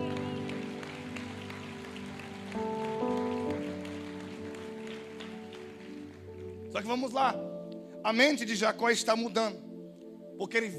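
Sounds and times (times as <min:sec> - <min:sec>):
church audience applauding: 0:00.0 - 0:06.8
sustained keyboard chords: 0:00.0 - 0:10.7
speech: 0:06.8 - 0:09.6, 0:10.4 - 0:10.7.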